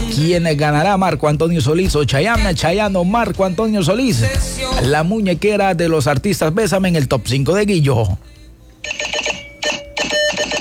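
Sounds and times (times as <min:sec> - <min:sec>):
speech: 0:00.2 - 0:08.4
Morse code beeping: 0:08.8 - 0:10.5.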